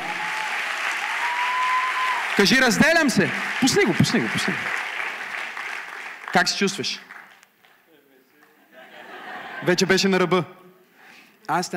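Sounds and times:
audience applause: 0:00.0 - 0:07.8
speech: 0:02.4 - 0:04.8, 0:06.3 - 0:07.1, 0:09.6 - 0:10.6, 0:11.5 - 0:11.7
laughter: 0:08.5 - 0:10.0.

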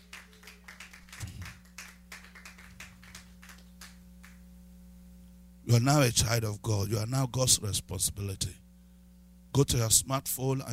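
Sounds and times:
people clapping: 0:00.0 - 0:04.5
speech: 0:05.7 - 0:08.6, 0:09.6 - 0:10.7.

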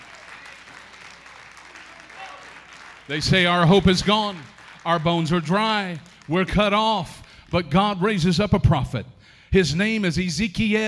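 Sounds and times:
audience hand clap of praise: 0:00.0 - 0:08.4
speech: 0:03.1 - 0:10.8.

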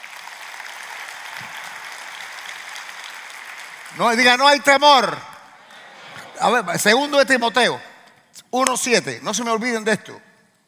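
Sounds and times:
audience applauding: 0:00.0 - 0:05.8
speech: 0:03.9 - 0:05.3, 0:06.4 - 0:10.2.

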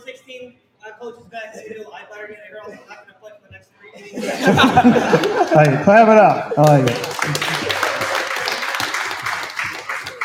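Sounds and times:
speech: 0:00.5 - 0:07.4
laughter: 0:04.0 - 0:10.2
audience applause at a West Genesee baseball event at The Wildcat: 0:04.8 - 0:06.0, 0:06.6 - 0:10.2.

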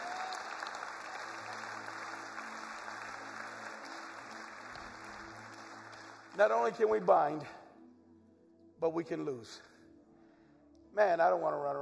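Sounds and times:
audience hand clapping in praise: 0:00.0 - 0:07.1
speech: 0:06.4 - 0:07.6, 0:08.8 - 0:09.7, 0:11.0 - 0:11.8.

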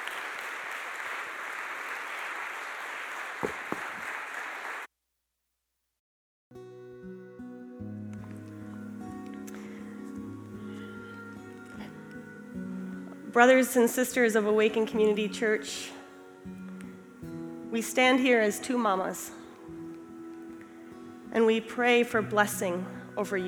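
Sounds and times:
audience applause: 0:00.0 - 0:04.9
speech: 0:13.4 - 0:16.0, 0:17.8 - 0:19.4, 0:21.4 - 0:23.4.

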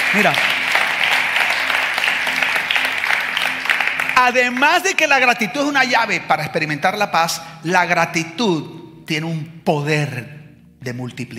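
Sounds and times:
crowd clapping: 0:00.0 - 0:06.2
speech: 0:00.1 - 0:00.6, 0:04.2 - 0:11.3.

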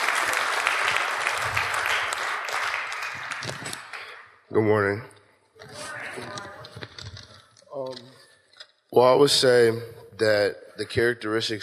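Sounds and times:
audience applause: 0:00.0 - 0:04.4
speech: 0:04.5 - 0:05.2, 0:09.0 - 0:11.6.

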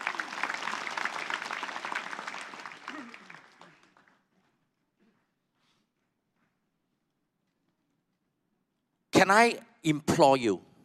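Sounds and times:
audience applause: 0:00.0 - 0:04.3
speech: 0:09.2 - 0:10.7.

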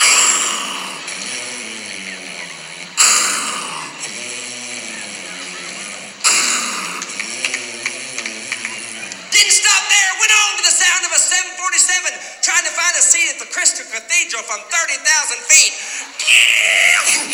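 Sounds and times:
loud snoring: 0:00.0 - 0:11.2
laughter: 0:00.0 - 0:17.3.

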